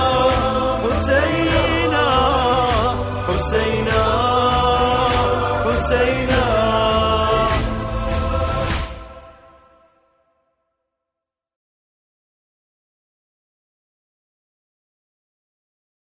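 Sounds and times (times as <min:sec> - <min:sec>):
Arabic nawha chant: 0:00.0 - 0:10.2.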